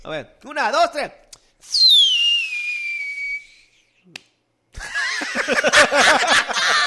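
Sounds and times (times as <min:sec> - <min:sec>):
speech: 0:00.0 - 0:01.9, 0:05.4 - 0:06.8
firework rocket whistling: 0:01.6 - 0:03.8
laughter: 0:04.8 - 0:06.8.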